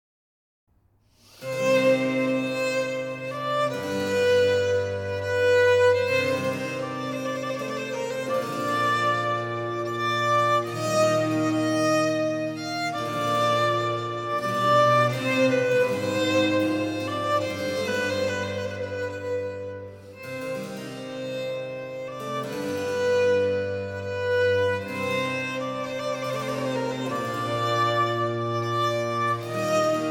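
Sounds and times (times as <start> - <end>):
baroque violin sonata: 1.2 - 30.0.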